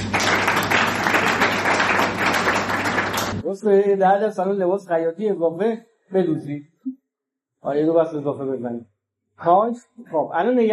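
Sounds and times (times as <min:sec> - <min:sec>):
audience applause: 0:00.0 - 0:03.4
speech: 0:03.6 - 0:07.0, 0:07.6 - 0:10.7.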